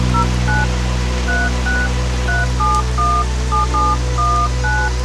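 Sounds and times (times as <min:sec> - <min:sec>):
telephone number dialed with DTMF tones: 0:00.1 - 0:00.7, 0:01.3 - 0:04.9.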